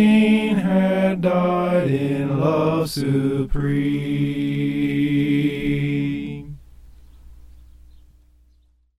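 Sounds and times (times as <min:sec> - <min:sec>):
soprano singing: 0:00.0 - 0:06.6.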